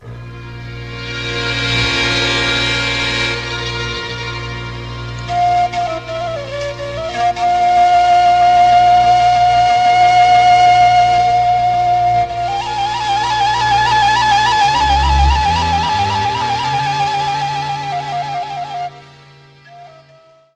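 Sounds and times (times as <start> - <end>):
Romanian shepherd's doina folk tune: 0.0 - 20.5.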